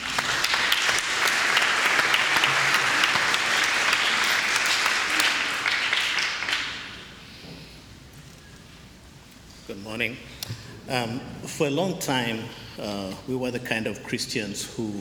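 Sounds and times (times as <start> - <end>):
congregation clapping to welcome two speakers: 0.0 - 7.2
speech: 10.0 - 15.0.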